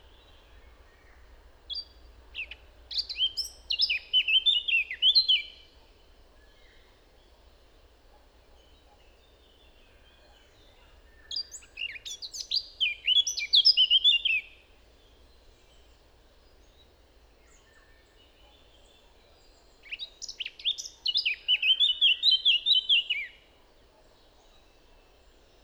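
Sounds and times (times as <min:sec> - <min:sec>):
Eurasian blackcap song: 0:00.0 - 0:25.6.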